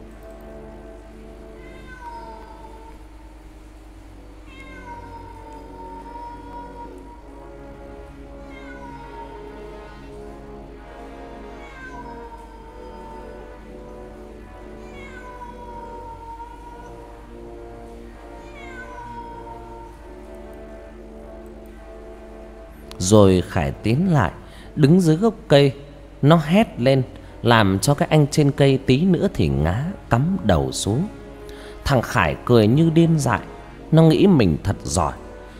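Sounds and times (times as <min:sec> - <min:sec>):
steady low hum: 0:00.0 - 0:35.5
cat meowing eerily: 0:01.6 - 0:03.0, 0:04.4 - 0:07.3, 0:08.4 - 0:10.1, 0:11.5 - 0:13.6, 0:14.6 - 0:17.0, 0:18.4 - 0:20.0
speech: 0:23.0 - 0:31.2, 0:31.8 - 0:35.2.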